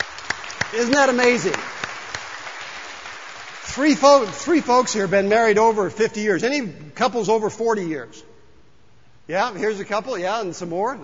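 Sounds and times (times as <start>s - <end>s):
crowd applauding: 0.0s - 5.0s
speech: 0.7s - 1.8s, 3.7s - 8.3s, 9.3s - 11.0s.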